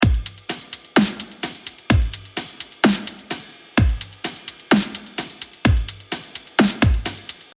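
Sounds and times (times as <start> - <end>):
drum break: 0.0 - 7.5.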